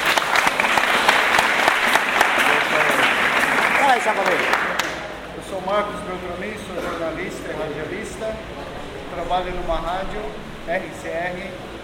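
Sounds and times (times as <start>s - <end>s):
audience applauding: 0.0s - 5.2s
speech: 4.1s - 4.6s, 5.7s - 11.7s.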